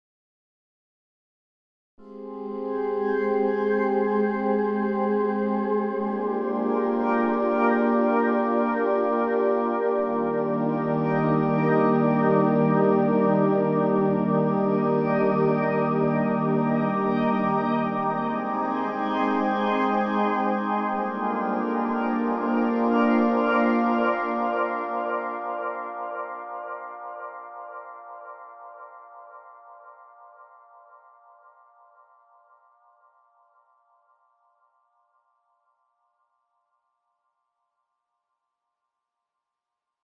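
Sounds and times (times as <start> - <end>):
synth pad with Korg SDD 3000 tape echo: 2.1 - 31.5.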